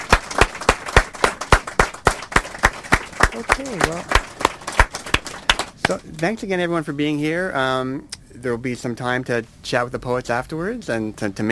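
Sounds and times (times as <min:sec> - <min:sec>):
hands clapping: 0:00.0 - 0:06.3
speech: 0:03.4 - 0:04.3, 0:05.9 - 0:11.5.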